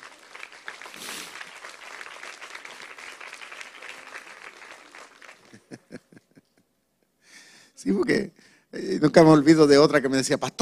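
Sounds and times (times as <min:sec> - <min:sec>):
audience applause: 0:00.0 - 0:06.1
laughter: 0:05.4 - 0:06.7
speech: 0:07.8 - 0:10.6.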